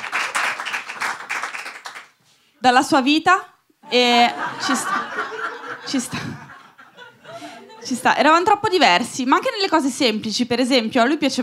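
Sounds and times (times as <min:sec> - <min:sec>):
audience applause: 0:00.0 - 0:02.1
speech: 0:02.6 - 0:06.5, 0:07.8 - 0:11.4
laughter: 0:03.9 - 0:08.0.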